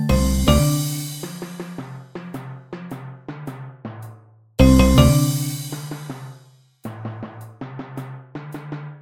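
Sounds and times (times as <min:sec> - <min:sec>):
trance dance music without claves: 0:00.0 - 0:01.8, 0:04.6 - 0:05.7.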